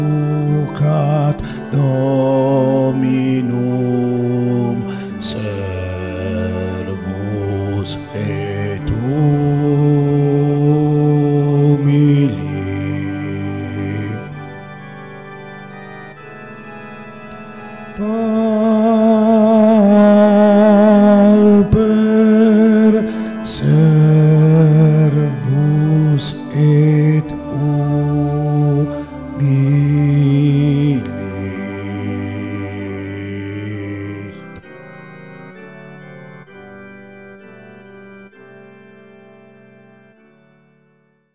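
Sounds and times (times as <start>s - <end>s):
bass voices of a choir singing: 0.0s - 15.0s, 17.9s - 34.6s.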